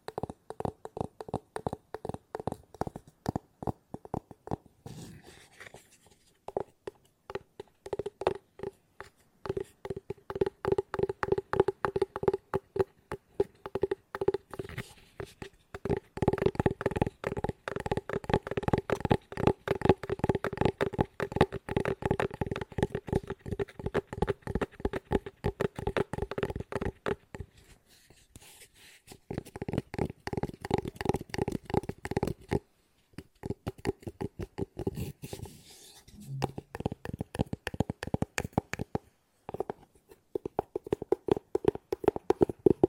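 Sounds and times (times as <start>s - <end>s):
fast hollow ASMR tapping: 0.0s - 4.8s, 6.4s - 27.5s, 29.3s - 32.6s, 33.2s - 35.0s, 36.3s - 42.8s
steady tone: 36.1s - 36.8s.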